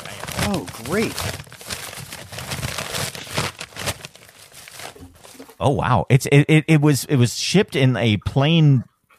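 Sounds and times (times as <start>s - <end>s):
blue package being opened: 0.0s - 5.6s
speech: 0.5s - 1.5s, 5.6s - 8.9s.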